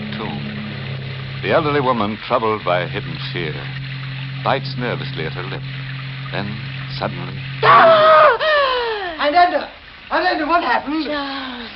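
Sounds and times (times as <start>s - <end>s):
speech: 1.4s - 8.1s, 9.2s - 11.7s
woman screaming in fright: 7.6s - 9.3s.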